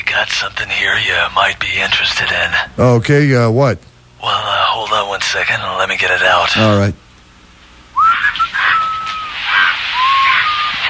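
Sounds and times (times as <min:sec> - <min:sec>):
speech: 0:00.2 - 0:07.0
bird squawking and whistling: 0:08.0 - 0:10.8.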